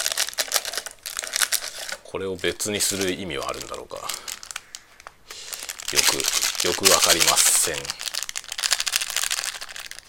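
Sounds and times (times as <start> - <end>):
plastic instant noodle packet crinkling: 0.0 - 10.0
speech: 2.1 - 4.3, 5.9 - 8.0.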